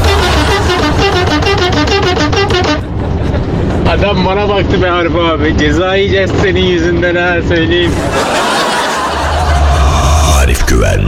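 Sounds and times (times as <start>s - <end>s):
car horn honking: 0.0s - 2.9s
laughter: 2.8s - 4.0s, 7.8s - 10.4s
speech: 4.1s - 8.6s, 10.7s - 11.0s.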